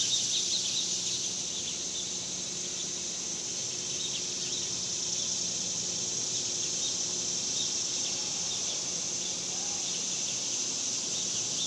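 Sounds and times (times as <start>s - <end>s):
cicadas droning: 0.0s - 11.6s.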